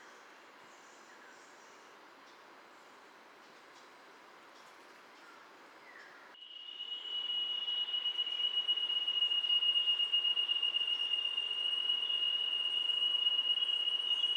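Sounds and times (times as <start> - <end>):
Spotted jewel-babbler Ptilorrhoa leucosticta giving thin high pulsing whistle: 6.4 - 14.3.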